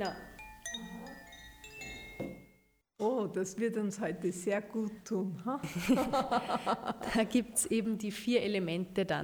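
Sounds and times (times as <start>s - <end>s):
speech: 0.0s - 0.8s, 3.0s - 9.2s
Koshi chimes ringing: 0.0s - 2.8s.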